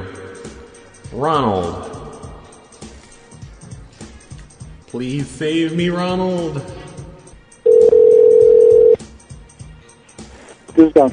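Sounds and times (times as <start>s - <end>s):
speech: 1.1s - 1.9s, 4.9s - 6.8s, 10.8s - 11.1s
telephone keypad tone during a voicemail menu: 7.7s - 9.0s.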